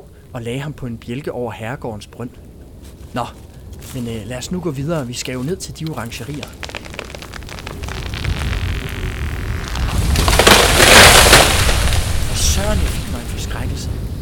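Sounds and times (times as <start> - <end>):
speech: 0.3 - 6.8
trees crashing down in strong wind: 5.8 - 13.9.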